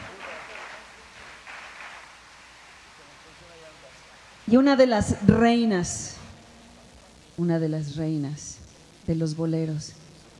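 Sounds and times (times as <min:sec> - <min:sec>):
audience applause: 0:00.0 - 0:02.4
speech: 0:04.5 - 0:06.2, 0:07.4 - 0:10.0.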